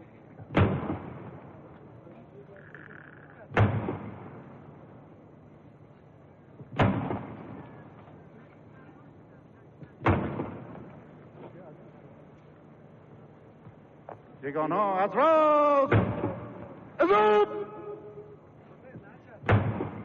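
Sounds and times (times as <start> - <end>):
ceremonial cannon salute shots for 50 years of Pahlavi monarchy: 0.5 - 1.7, 3.5 - 4.7, 6.7 - 7.8, 10.0 - 11.0, 15.1 - 18.0, 19.4 - 20.0
speech: 14.5 - 16.1, 17.1 - 17.5.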